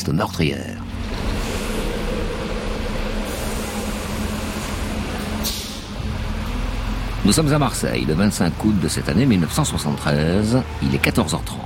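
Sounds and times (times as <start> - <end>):
speech: 0.0 - 1.2, 7.2 - 11.6
city bus line 72 engine droning in Marseille: 0.3 - 11.6
city bus air brakes hissing: 1.2 - 6.1.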